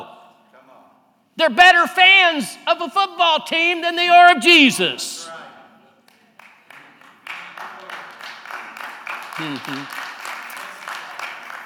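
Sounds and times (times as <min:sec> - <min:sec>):
speech: 0:01.4 - 0:05.6, 0:09.4 - 0:10.1
audience clapping: 0:06.0 - 0:11.6.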